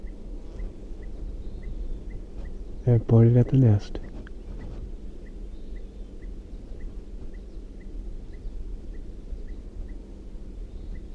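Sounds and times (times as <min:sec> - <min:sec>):
bird alarm calls: 0:00.0 - 0:11.1
low rumble: 0:00.0 - 0:11.1
speech: 0:02.8 - 0:04.0.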